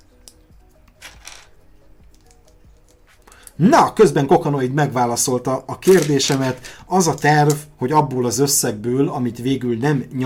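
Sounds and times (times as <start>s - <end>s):
Lego bricks clattering while building a Lego bonsai tree trunk: 0.9s - 1.5s, 5.8s - 7.6s
speech: 3.6s - 10.2s.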